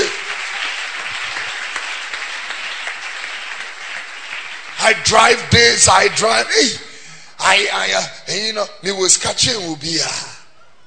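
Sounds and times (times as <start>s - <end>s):
audience clapping hands: 0.0s - 6.4s
speech: 4.9s - 10.3s.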